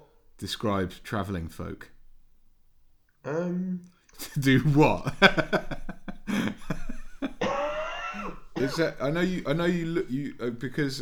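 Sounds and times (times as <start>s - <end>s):
speech: 0.4s - 2.0s, 3.2s - 5.9s, 8.6s - 11.0s
laughter: 4.2s - 11.0s
cough into the microphone: 7.4s - 9.4s.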